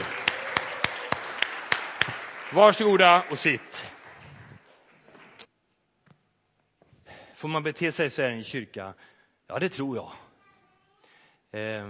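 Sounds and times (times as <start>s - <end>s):
audience applauding: 0.0s - 5.4s
speech: 2.5s - 3.9s, 7.4s - 10.2s, 11.5s - 11.8s.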